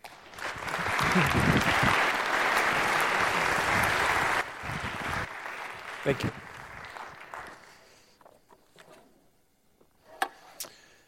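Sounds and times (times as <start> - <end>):
audience clapping for a speaker at a morning talk: 0.0 - 8.1
speech: 1.2 - 1.8, 6.0 - 6.4.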